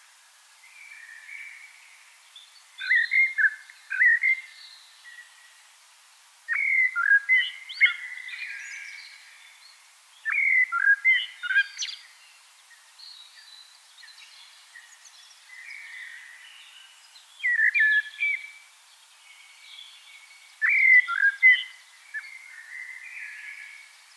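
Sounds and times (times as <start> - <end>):
common blackbird singing flute-like warbled phrases: 0.6 - 5.7, 6.5 - 24.1.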